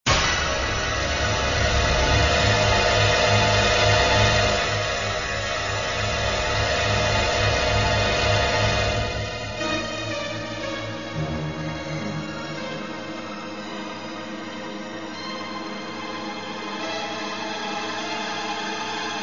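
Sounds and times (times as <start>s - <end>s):
scary music: 0.1s - 19.2s.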